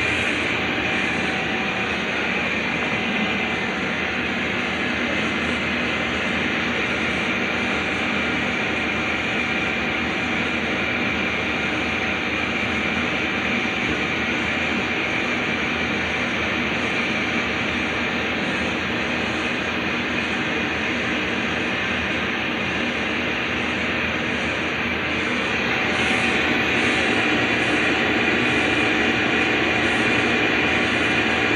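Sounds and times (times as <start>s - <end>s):
conveyor running: 0.0s - 31.5s.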